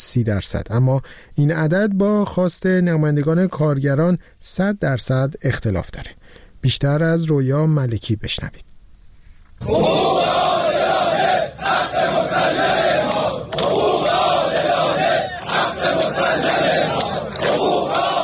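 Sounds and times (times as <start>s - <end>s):
speech: 0.1s - 8.7s, 9.6s - 10.4s
large crowd of protesting workers shouting and chanting demands: 9.6s - 18.2s.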